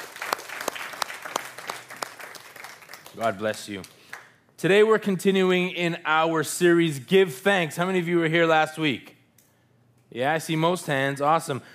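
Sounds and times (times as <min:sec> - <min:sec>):
audience applause: 0:00.0 - 0:03.6
speech: 0:03.2 - 0:04.0, 0:04.6 - 0:09.1, 0:10.1 - 0:11.7.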